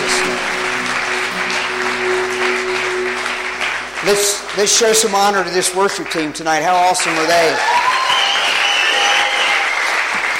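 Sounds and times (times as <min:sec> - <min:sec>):
low sustained hum: 0:00.0 - 0:05.8
audience applauding: 0:00.0 - 0:10.3
speech: 0:04.1 - 0:08.0.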